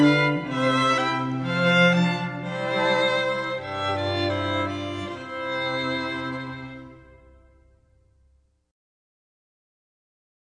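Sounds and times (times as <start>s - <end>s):
string trio playing: 0.0s - 7.3s.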